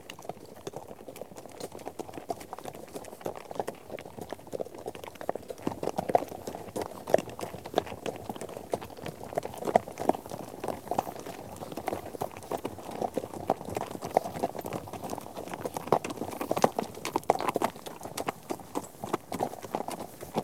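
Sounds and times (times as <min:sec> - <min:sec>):
horse hooves clip-clopping: 0:00.0 - 0:20.4.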